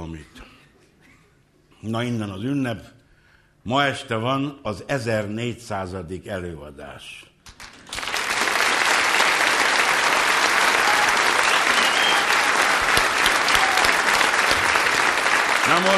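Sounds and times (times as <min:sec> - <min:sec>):
speech: 0:01.8 - 0:03.0, 0:03.6 - 0:07.3, 0:15.7 - 0:15.9
audience applause: 0:07.6 - 0:15.9.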